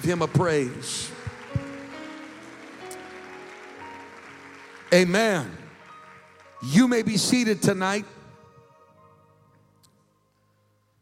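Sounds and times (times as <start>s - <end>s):
speech: 0.0s - 1.2s, 4.9s - 5.6s, 6.6s - 8.2s
crowd clapping hands: 0.0s - 7.8s.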